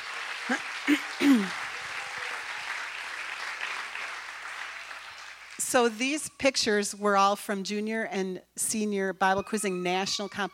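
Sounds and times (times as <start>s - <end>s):
audience clapping: 0.0s - 6.1s
speech: 0.5s - 1.0s, 5.8s - 10.5s.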